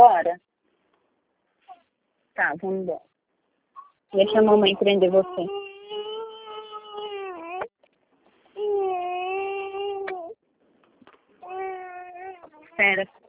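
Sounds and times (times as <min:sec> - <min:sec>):
speech: 0:00.0 - 0:00.5, 0:02.4 - 0:03.1, 0:04.1 - 0:05.7, 0:12.8 - 0:13.2
infant crying after just waking up: 0:04.2 - 0:07.7, 0:08.6 - 0:10.4, 0:11.4 - 0:12.8.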